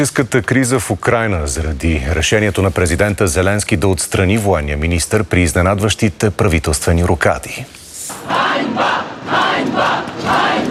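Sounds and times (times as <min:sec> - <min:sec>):
speech: 0:00.0 - 0:10.6
protesting crowd chanting in unison: 0:08.1 - 0:10.6.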